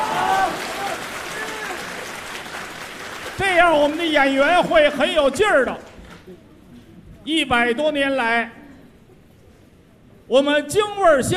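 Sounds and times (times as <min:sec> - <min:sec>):
crowd audience applause: 0:00.0 - 0:06.2
speech: 0:03.6 - 0:06.4, 0:07.2 - 0:08.6, 0:10.3 - 0:11.3.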